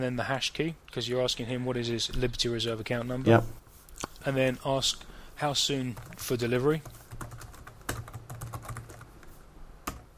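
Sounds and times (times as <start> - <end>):
speech: 0.0 - 7.3
typing on a computer keyboard: 5.9 - 10.1.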